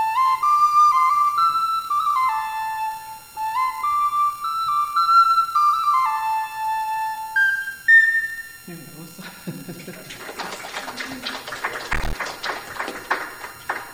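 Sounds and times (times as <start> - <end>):
Native American flute improvisation: 0.0 - 9.1
laughter: 8.9 - 11.9.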